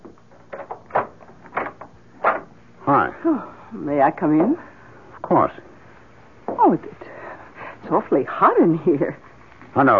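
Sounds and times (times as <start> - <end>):
door being unlocked and opened: 0.4 - 2.5
speech: 3.2 - 4.7, 5.3 - 5.7, 6.6 - 7.0, 7.9 - 9.9.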